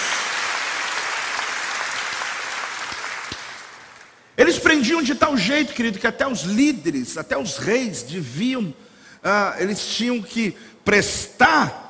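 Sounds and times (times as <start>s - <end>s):
audience applause: 0.0s - 4.2s
speech: 4.4s - 11.8s.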